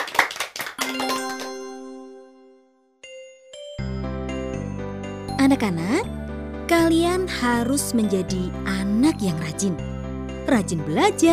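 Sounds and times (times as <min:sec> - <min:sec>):
clapping applause: 0:00.0 - 0:01.8
speech: 0:05.4 - 0:11.3.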